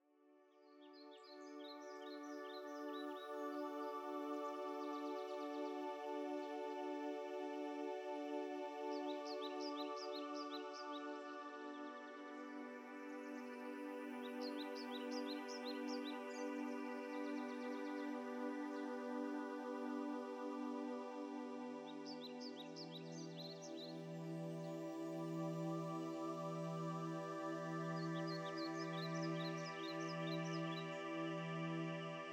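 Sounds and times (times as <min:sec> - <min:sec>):
healing music: 0:00.0 - 0:32.3.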